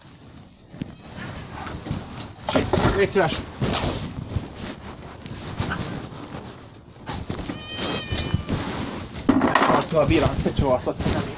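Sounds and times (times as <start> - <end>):
rustling wind-like noise: 0.0 - 11.3
speech: 2.5 - 4.1, 10.0 - 11.3
cat meowing: 7.4 - 8.8.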